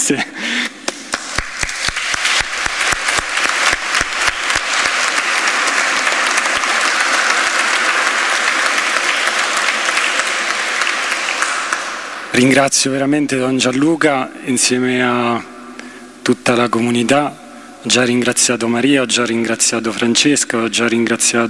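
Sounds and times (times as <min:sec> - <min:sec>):
speech: 0:00.1 - 0:00.5, 0:12.4 - 0:15.5, 0:16.3 - 0:21.4
audience applause in church: 0:00.8 - 0:12.3.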